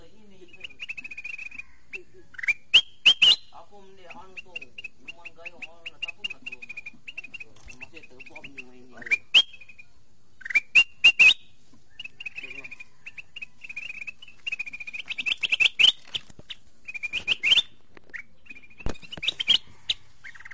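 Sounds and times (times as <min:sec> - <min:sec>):
sooty-headed bulbul whistled calls: 0:00.0 - 0:20.5.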